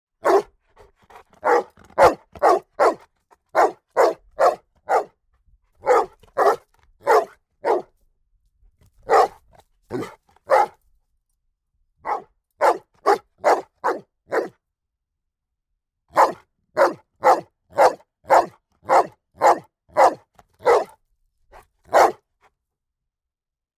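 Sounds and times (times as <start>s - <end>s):
Rhodesian ridgeback bullmastiff mix barking: 0.2s - 5.2s, 5.8s - 7.9s, 9.0s - 10.8s, 12.0s - 14.6s, 16.1s - 22.2s.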